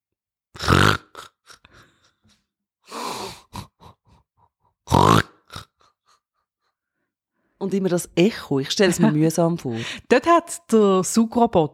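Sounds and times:
person imitating snoring: 0:00.6 - 0:01.8, 0:02.9 - 0:06.0
speech: 0:07.6 - 0:11.7
laughter: 0:08.8 - 0:09.9.

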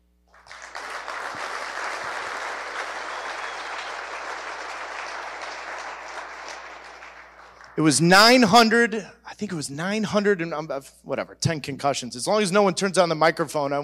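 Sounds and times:
audience applause: 0:00.3 - 0:07.8
speech: 0:07.8 - 0:13.8.

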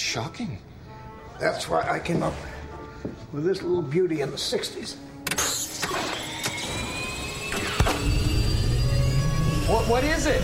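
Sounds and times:
speech: 0:00.1 - 0:00.7, 0:01.4 - 0:05.1, 0:09.7 - 0:10.4
jet turbine engine starting up: 0:05.5 - 0:10.4.

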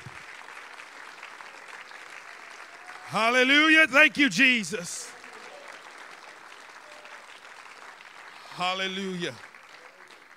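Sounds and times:
audience clapping: 0:00.0 - 0:10.3
speech: 0:03.1 - 0:05.0, 0:08.6 - 0:09.5.

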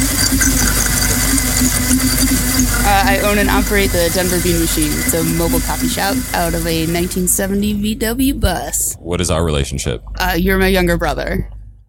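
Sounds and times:
blender making a smoothie: 0:00.0 - 0:07.7
speech: 0:02.9 - 0:11.6.

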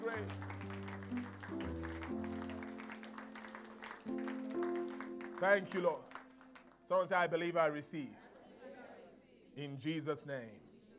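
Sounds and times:
audience clapping: 0:00.0 - 0:07.4
speech: 0:00.2 - 0:00.5, 0:05.4 - 0:06.1, 0:06.9 - 0:08.2, 0:09.6 - 0:10.6.

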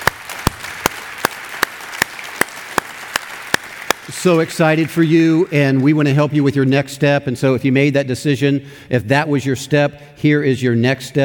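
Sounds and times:
scattered applause at a church service: 0:00.0 - 0:06.3
congregation at a church service clapping in unison: 0:00.0 - 0:06.8
speech: 0:04.1 - 0:11.2.

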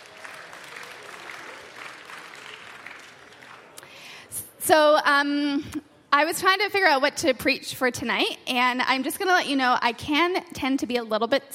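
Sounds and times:
audience applause: 0:00.0 - 0:04.0
speech: 0:04.7 - 0:11.5.

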